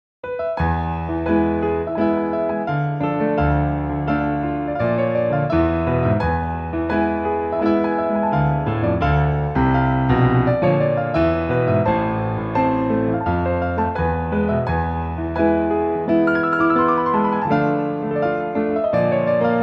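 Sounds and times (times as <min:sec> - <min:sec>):
piano: 0:00.2 - 0:19.6.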